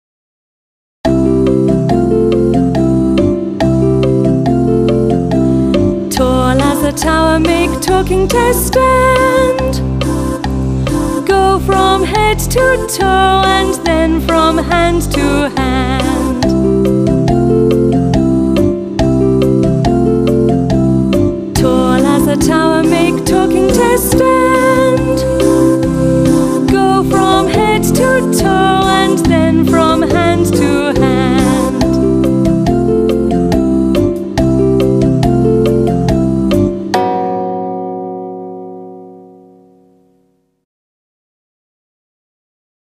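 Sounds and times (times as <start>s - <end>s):
song: 1.1s - 40.3s.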